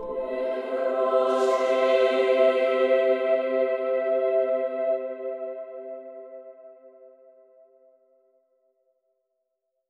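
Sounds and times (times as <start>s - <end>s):
female choir singing: 0.0s - 6.3s.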